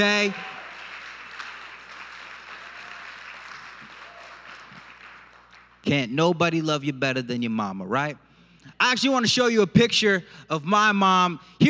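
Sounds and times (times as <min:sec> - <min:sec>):
speech: 0:00.0 - 0:00.5, 0:05.8 - 0:11.6
applause: 0:00.0 - 0:05.9.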